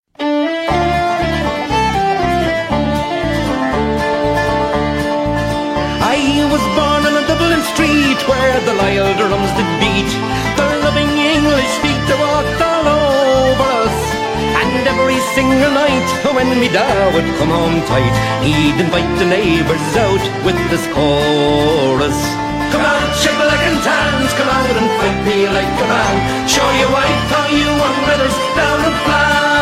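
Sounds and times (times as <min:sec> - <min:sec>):
Irish country music ringtone: 0:00.2 - 0:29.6.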